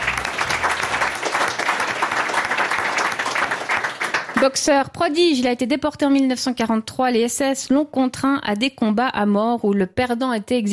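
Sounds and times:
audience applause: 0.0s - 4.6s
speech: 4.4s - 10.7s.

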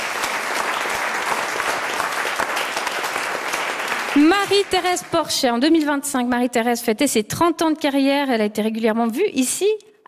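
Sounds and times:
audience applause: 0.0s - 5.4s
speech: 4.2s - 9.9s.

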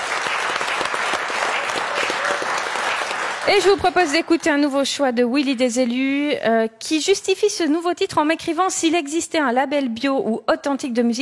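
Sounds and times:
audience applause: 0.0s - 4.6s
speech: 3.4s - 11.2s.

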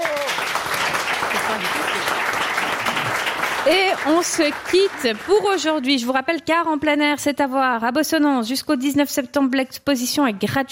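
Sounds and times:
audience applause: 0.0s - 5.9s
speech: 3.7s - 10.6s.

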